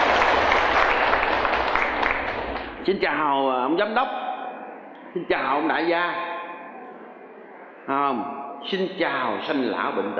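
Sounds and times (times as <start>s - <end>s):
audience applauding during a Buddhist monk's dharma talk: 0.0s - 2.9s
speech: 2.9s - 4.2s, 5.2s - 6.3s, 7.9s - 10.1s.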